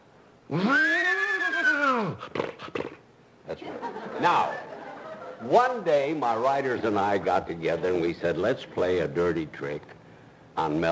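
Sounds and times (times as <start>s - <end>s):
speech: 0.5s - 0.9s, 4.2s - 4.6s, 5.4s - 10.0s, 10.6s - 10.9s
person's voice imitating a horse whinny: 0.5s - 2.5s
laughter: 3.6s - 5.7s.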